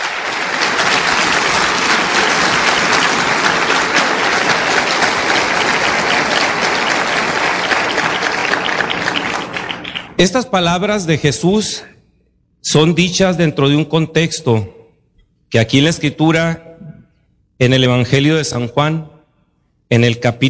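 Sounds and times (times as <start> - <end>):
audience applauding: 0.0 - 10.3
speech: 10.2 - 12.0, 12.6 - 14.8, 15.5 - 16.7, 17.6 - 19.1, 19.9 - 20.4.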